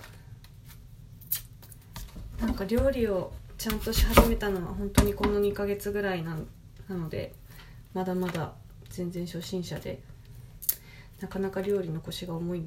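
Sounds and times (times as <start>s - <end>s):
speech: 2.6s - 10.1s, 11.2s - 12.6s
knife chopping an onion finely on a board in a home kitchen: 3.7s - 5.5s.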